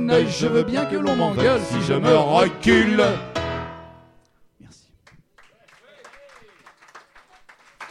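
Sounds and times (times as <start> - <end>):
speech: 0.2 - 3.3
crowd applause: 5.4 - 7.8.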